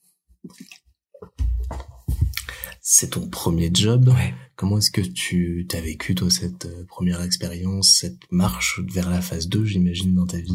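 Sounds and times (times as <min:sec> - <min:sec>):
person sipping and swallowing water: 0:00.4 - 0:02.8
wet mouth clicks: 0:02.3 - 0:02.8
speech: 0:02.9 - 0:10.5.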